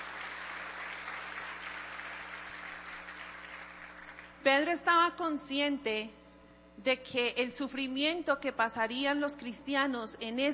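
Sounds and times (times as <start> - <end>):
audience applause: 0.0 - 4.3
speech: 4.4 - 6.2, 6.8 - 10.5.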